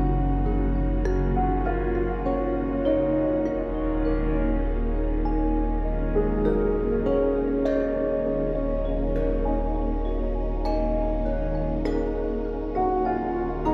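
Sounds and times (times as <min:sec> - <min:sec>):
3D relaxation music: 0:00.0 - 0:13.7.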